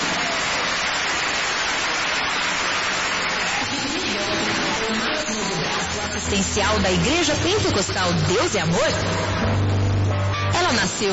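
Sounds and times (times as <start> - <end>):
crowd clapping: 0.0 - 6.2
speech: 6.3 - 9.7, 10.7 - 11.1.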